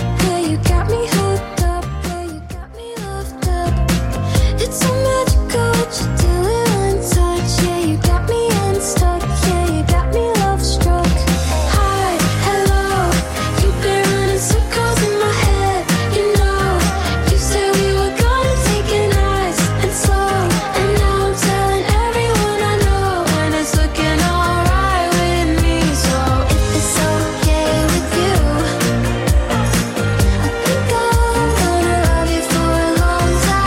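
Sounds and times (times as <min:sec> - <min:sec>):
Top40 pop music track: 0:00.0 - 0:33.6.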